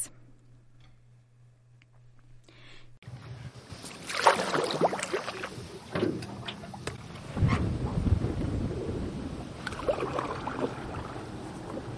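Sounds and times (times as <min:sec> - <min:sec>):
paddling an aluminum canoe on river: 0:03.6 - 0:08.0, 0:09.3 - 0:11.9.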